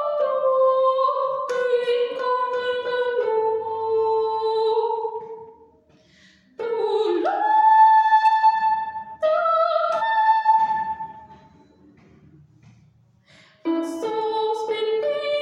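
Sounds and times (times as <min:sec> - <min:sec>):
soprano singing: 0:00.0 - 0:05.4, 0:06.6 - 0:11.6, 0:13.7 - 0:15.4.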